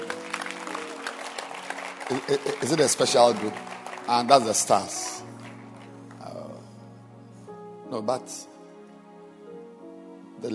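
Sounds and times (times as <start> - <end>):
applause: 0.0 - 6.4
speech: 2.1 - 5.2, 7.9 - 8.5.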